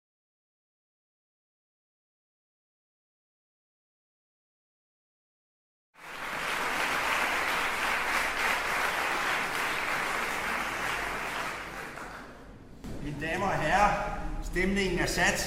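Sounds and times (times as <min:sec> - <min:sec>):
concert audience applause: 0:06.0 - 0:12.5
speech: 0:13.2 - 0:15.4.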